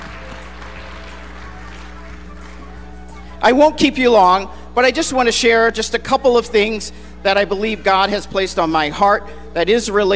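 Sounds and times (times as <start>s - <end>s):
audience applause: 0.0s - 3.0s
speech: 3.4s - 10.1s.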